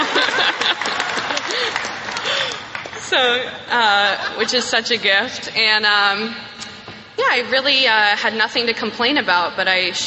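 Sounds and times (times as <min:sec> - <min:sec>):
audience applause: 0:00.0 - 0:03.3
laughter: 0:00.0 - 0:05.3
speech: 0:03.1 - 0:06.5, 0:07.2 - 0:10.0.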